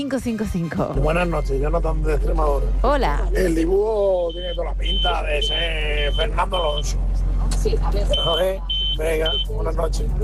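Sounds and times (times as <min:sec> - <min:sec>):
speech: 0:00.0 - 0:10.2
man talking on a muffled narrowband phone line: 0:03.4 - 0:06.9, 0:08.1 - 0:09.8
electronic alarm tone beeping: 0:04.2 - 0:06.9, 0:08.1 - 0:09.6.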